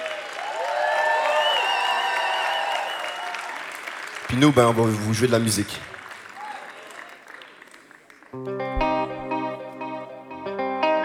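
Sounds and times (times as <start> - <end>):
crowd cheering: 0.0 - 5.1, 5.9 - 9.7
crowd applauding: 0.0 - 8.5
whistles: 1.2 - 3.3
speech: 4.3 - 5.9.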